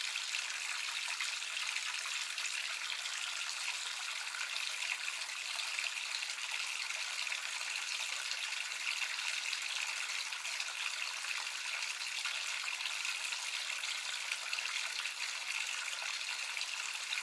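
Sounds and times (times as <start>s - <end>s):
water filling a household bathtub: 0.0s - 17.2s.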